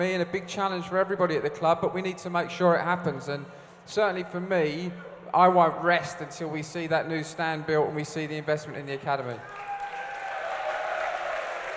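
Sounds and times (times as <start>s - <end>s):
speech: 0.0s - 9.7s
audience applause at a football club gathering: 9.4s - 11.7s.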